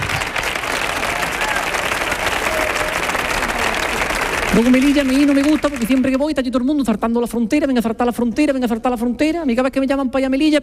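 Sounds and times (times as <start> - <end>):
large audience applause: 0.0 - 6.2
speech: 4.6 - 10.6.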